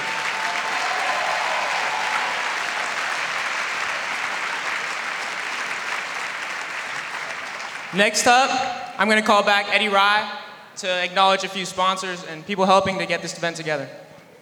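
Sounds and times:
audience applause: 0:00.0 - 0:08.0
speech: 0:07.9 - 0:14.0.

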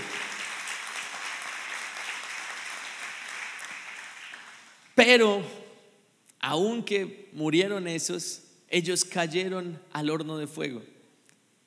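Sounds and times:
audience applauding: 0:00.0 - 0:04.9
speech: 0:05.0 - 0:05.6, 0:06.4 - 0:10.9.

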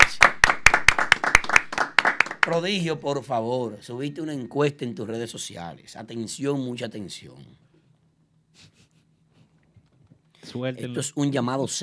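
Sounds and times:
hand clapping: 0:00.0 - 0:02.6
speech: 0:02.5 - 0:07.7, 0:10.5 - 0:11.8.

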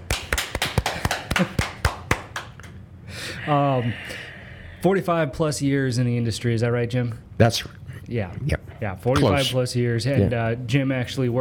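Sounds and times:
applause: 0:00.0 - 0:02.8
speech: 0:03.5 - 0:11.3.

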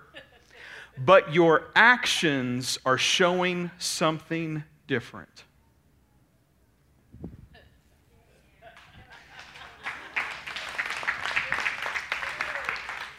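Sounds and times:
speech: 0:01.0 - 0:05.5
laughter: 0:07.5 - 0:12.8
audience applause: 0:08.8 - 0:13.1.

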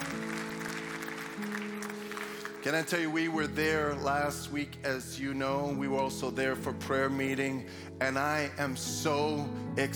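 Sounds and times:
crowd clapping and cheering with whoops: 0:00.0 - 0:03.6
speech: 0:02.6 - 0:09.9.

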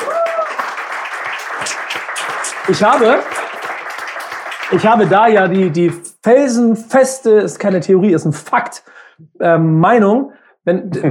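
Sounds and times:
crowd applauding: 0:00.0 - 0:06.1
speech: 0:02.7 - 0:03.4, 0:04.7 - 0:11.0.

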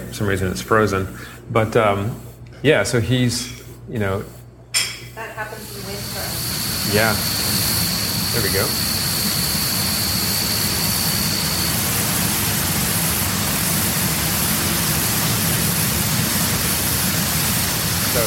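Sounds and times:
speech: 0:00.1 - 0:04.4, 0:06.9 - 0:07.4, 0:08.4 - 0:08.9
crickets: 0:05.6 - 0:12.7
flying insect: 0:05.6 - 0:14.2
grasshoppers: 0:05.8 - 0:18.2
jet plane: 0:08.0 - 0:17.0.

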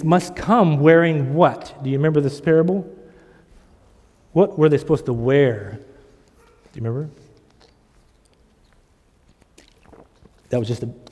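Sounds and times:
speech: 0:00.0 - 0:03.0, 0:04.4 - 0:05.9, 0:06.8 - 0:07.2, 0:10.5 - 0:11.0
person sipping a drink: 0:07.5 - 0:11.1.

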